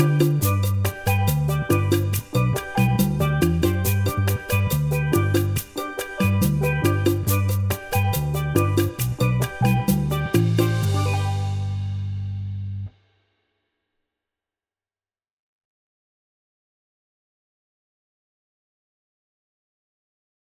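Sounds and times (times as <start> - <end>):
one chord calypso backing track in G: 0.0 - 12.8.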